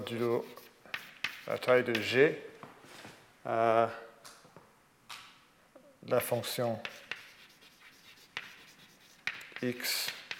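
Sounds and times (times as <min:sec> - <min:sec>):
speech: 0:00.0 - 0:00.7, 0:01.5 - 0:02.5, 0:03.4 - 0:04.1, 0:06.0 - 0:07.0, 0:09.6 - 0:10.2
writing mathematical notation on a board: 0:00.0 - 0:02.1, 0:06.4 - 0:10.3.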